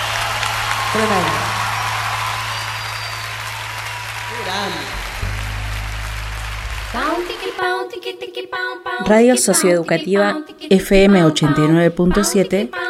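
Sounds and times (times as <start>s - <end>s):
applause for a musical trio: 0.0s - 7.7s
speech: 0.9s - 1.5s, 6.9s - 12.8s
low hum: 1.6s - 7.8s
voice rising: 4.3s - 7.6s.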